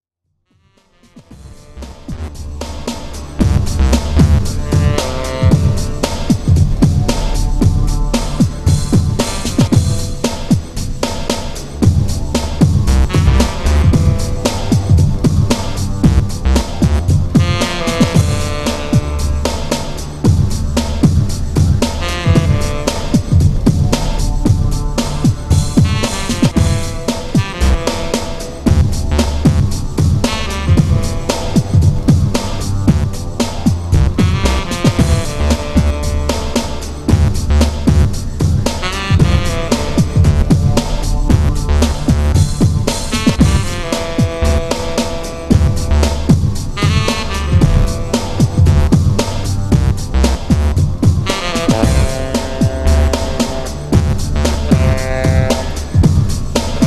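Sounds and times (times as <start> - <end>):
saxophone session: 0.7 - 56.8.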